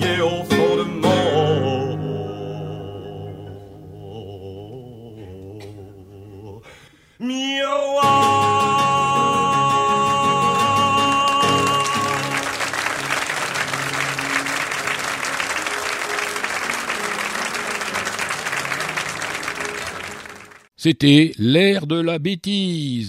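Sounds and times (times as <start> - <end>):
live song: 0.0 - 6.2, 7.7 - 20.6
audience applause after a live song: 10.9 - 20.7
speech: 20.8 - 23.0.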